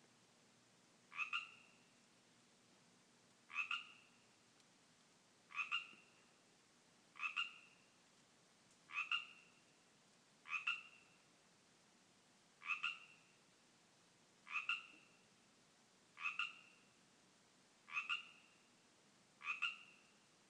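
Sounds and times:
Pacific tree frogs calling in a yard: 1.1 - 1.9, 3.5 - 4.3, 5.5 - 6.4, 7.1 - 8.0, 8.9 - 9.8, 10.4 - 11.3, 12.6 - 13.4, 14.4 - 15.3, 16.2 - 17.0, 17.8 - 18.7, 19.4 - 20.2.

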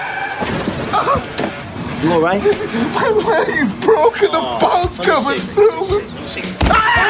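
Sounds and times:
car crash sound effect: 0.1 - 1.6
speech: 2.0 - 7.0
laughter: 2.3 - 4.5.

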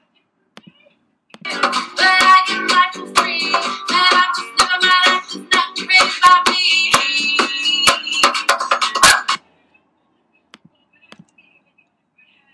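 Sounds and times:
acoustic cover drums: 1.4 - 9.4.

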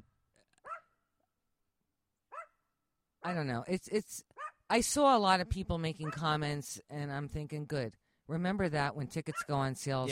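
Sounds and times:
dog barking: 0.6 - 0.9, 2.3 - 2.5, 4.4 - 4.6
speech: 3.2 - 10.0.

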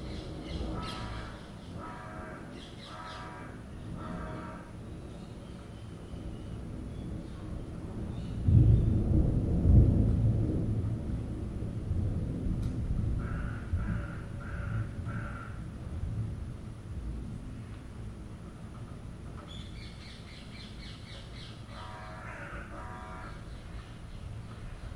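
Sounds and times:
noisy birds: 0.0 - 9.1, 13.2 - 15.8, 18.6 - 24.9
thunderstorm: 0.0 - 24.9.

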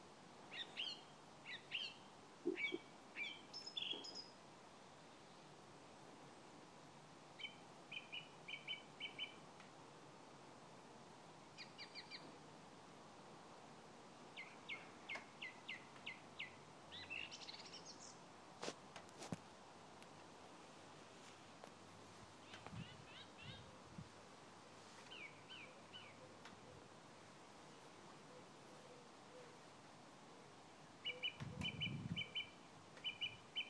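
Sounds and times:
birdsong on a Sunday morning in Christchurch: 0.5 - 4.4, 7.4 - 9.5, 11.5 - 12.5, 14.3 - 18.3, 22.3 - 23.9, 25.0 - 26.9, 31.0 - 33.6.

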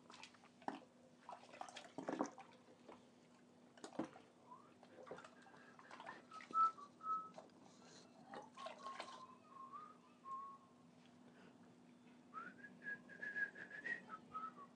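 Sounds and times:
water splashing while washing up: 0.0 - 7.4, 8.3 - 9.3
person whistling a rock song tune while washing up: 6.3 - 7.4, 9.2 - 10.6, 12.3 - 14.7.

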